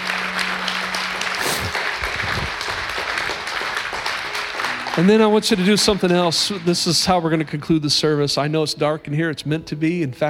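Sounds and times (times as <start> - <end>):
audience clapping in praise: 0.0 - 8.2
speech: 5.0 - 10.2.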